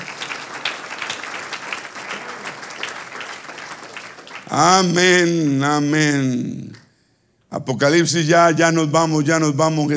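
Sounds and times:
audience applause: 0.0s - 4.8s
speech: 4.5s - 6.8s, 7.5s - 9.9s.

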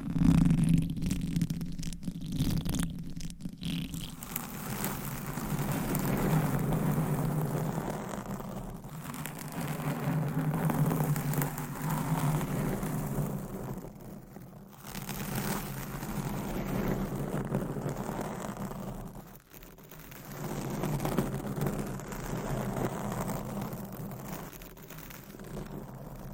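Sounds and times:
fingernails scratching over a covered microphone: 0.0s - 26.3s.

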